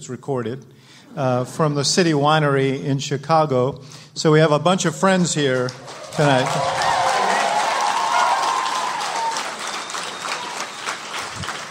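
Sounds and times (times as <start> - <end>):
speech: 0.0 - 7.0
crowd noise: 5.5 - 11.6
live podcast audience applauding at City Winery in Chicago: 5.6 - 11.6.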